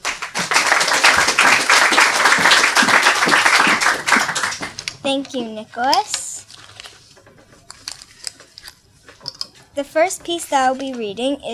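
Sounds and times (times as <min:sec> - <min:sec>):
crowd applauding: 0:00.0 - 0:05.0
speech: 0:05.1 - 0:06.2, 0:09.8 - 0:11.5.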